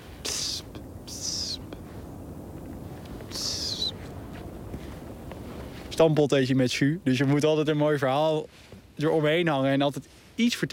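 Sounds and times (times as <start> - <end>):
soft hiss: 0.0 - 10.7
redwing giving thin high-pitched drawn-out calls: 0.2 - 1.7, 3.2 - 4.1
speech: 6.0 - 10.7.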